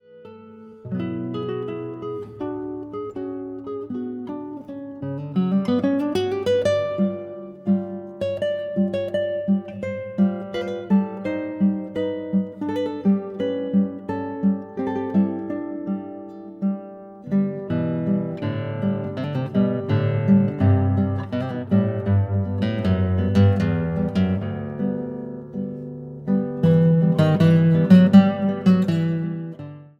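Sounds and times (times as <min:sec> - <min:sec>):
wordless song: 0:00.0 - 0:29.9.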